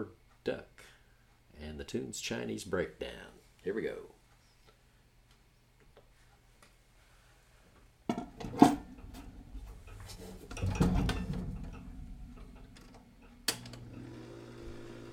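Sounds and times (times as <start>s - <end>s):
speech: 0.0s - 0.7s, 1.6s - 4.2s
motor noise of a 78 rpm record player: 8.8s - 15.1s.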